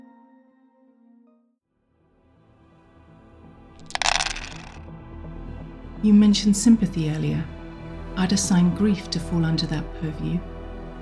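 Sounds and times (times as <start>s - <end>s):
dice being rolled: 3.8s - 4.8s
speech: 6.0s - 7.5s, 8.2s - 10.5s.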